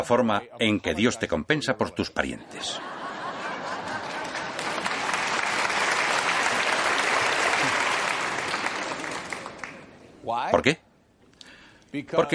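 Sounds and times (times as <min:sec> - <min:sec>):
speech: 0:00.0 - 0:03.0, 0:10.3 - 0:10.8, 0:11.9 - 0:12.3
laughter: 0:02.4 - 0:05.1
audience applause: 0:03.1 - 0:09.9.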